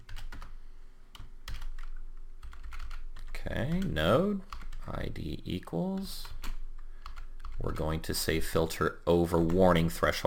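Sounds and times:
typing on a computer keyboard: 0:00.1 - 0:00.5, 0:01.2 - 0:04.8, 0:06.0 - 0:07.8
speech: 0:03.4 - 0:06.4, 0:07.6 - 0:10.2.

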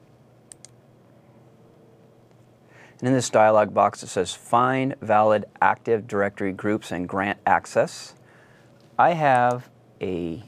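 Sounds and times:
low steady hum: 0:00.0 - 0:10.4
computer mouse clicks: 0:00.5 - 0:00.8
speech: 0:03.0 - 0:08.2, 0:09.0 - 0:10.4.

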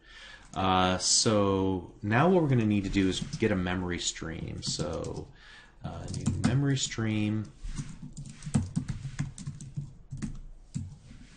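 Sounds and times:
speech: 0:00.5 - 0:08.3
typing on a computer keyboard: 0:04.6 - 0:05.3, 0:06.0 - 0:06.6, 0:07.8 - 0:11.0.

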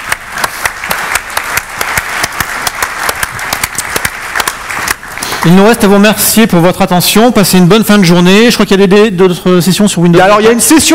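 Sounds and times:
audience applause: 0:00.0 - 0:06.4
speech: 0:05.4 - 0:10.9.

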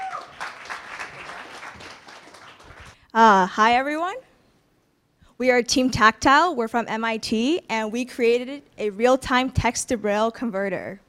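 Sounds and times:
audience applause at a tech demo event: 0:00.0 - 0:03.0
speech: 0:03.1 - 0:04.3, 0:05.4 - 0:11.0.

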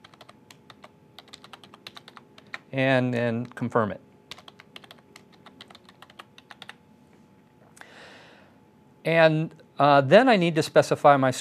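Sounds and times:
typing an admin password on a computer keyboard: 0:00.0 - 0:02.7, 0:04.3 - 0:06.8
speech: 0:02.7 - 0:04.1, 0:09.0 - 0:11.3.

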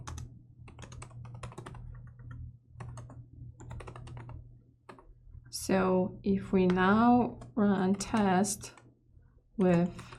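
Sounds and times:
typing code on a computer keyboard: 0:00.0 - 0:05.1, 0:06.6 - 0:08.9, 0:09.6 - 0:10.1
speech: 0:05.6 - 0:08.8, 0:09.6 - 0:10.1.

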